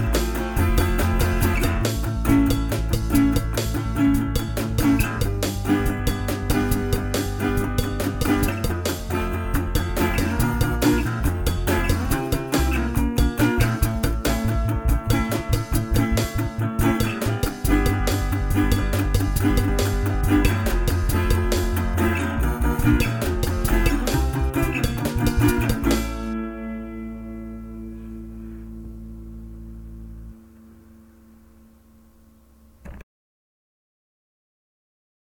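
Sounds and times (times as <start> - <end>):
drums: 0.0 - 26.4.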